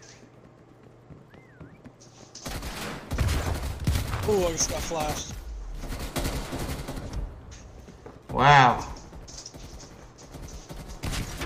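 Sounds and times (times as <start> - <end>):
gunfire in a video game: 2.4 - 7.5, 8.3 - 11.4
speech: 4.3 - 5.4, 8.4 - 8.9.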